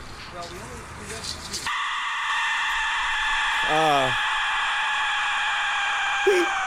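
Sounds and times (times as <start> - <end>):
Aztec death whistle: 1.7 - 6.6.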